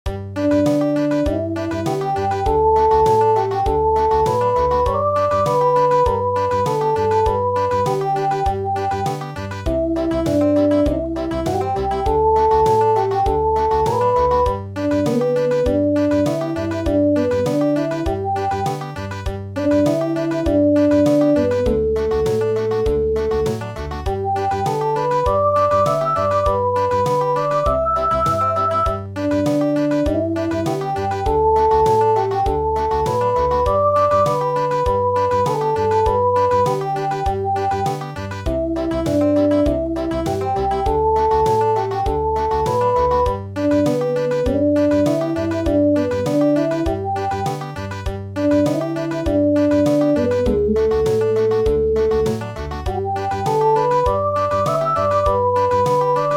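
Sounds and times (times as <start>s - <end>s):
country midi music: 0.1s - 56.3s.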